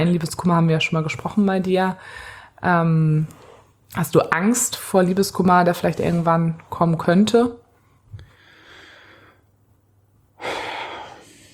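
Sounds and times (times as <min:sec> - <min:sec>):
speech: 0:00.0 - 0:07.6
heavy breathing: 0:08.2 - 0:09.5, 0:10.4 - 0:11.5.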